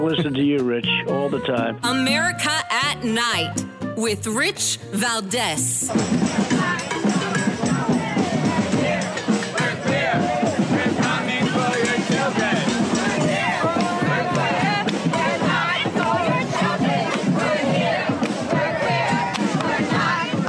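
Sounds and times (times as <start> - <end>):
speech: 0.1 - 6.9
crowd chanting at a Pride event in New York City: 6.2 - 20.4.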